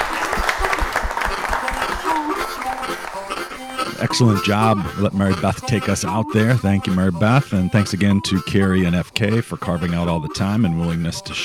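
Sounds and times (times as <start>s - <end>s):
audience applause for volunteers: 0.0s - 4.9s
laughter: 0.0s - 11.4s
speech: 4.1s - 11.4s.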